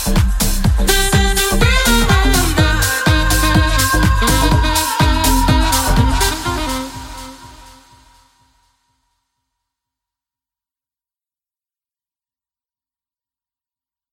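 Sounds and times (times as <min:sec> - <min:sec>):
saxophone: 0:00.0 - 0:08.2.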